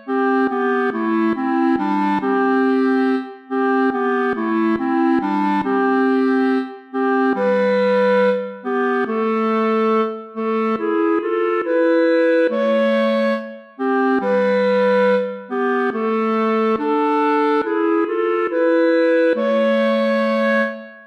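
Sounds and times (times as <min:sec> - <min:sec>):
allemande play-along accompaniment: 0:00.0 - 0:21.0.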